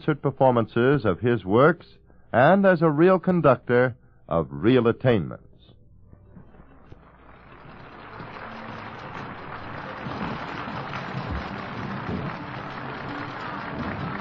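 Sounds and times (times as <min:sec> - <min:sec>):
speech: 0:00.0 - 0:05.5
concert audience applause: 0:07.0 - 0:14.1.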